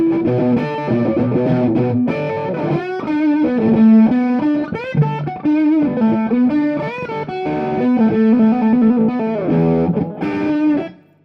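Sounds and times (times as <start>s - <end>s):
low fuzz guitar playing blues: 0.0s - 11.1s.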